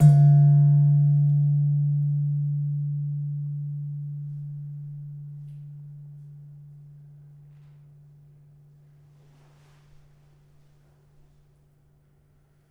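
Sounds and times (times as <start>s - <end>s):
slentem gamelan metallophone struck hard: 0.0s - 4.3s.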